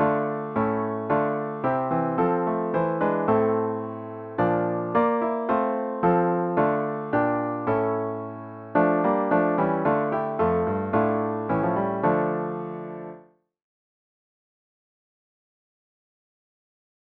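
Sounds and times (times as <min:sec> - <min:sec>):
piano: 0:00.0 - 0:13.4.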